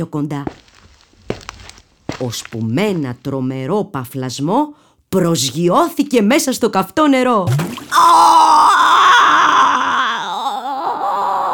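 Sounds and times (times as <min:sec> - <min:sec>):
speech: 0:00.0 - 0:00.6, 0:02.2 - 0:08.5
wolf howling in pain: 0:07.9 - 0:11.5.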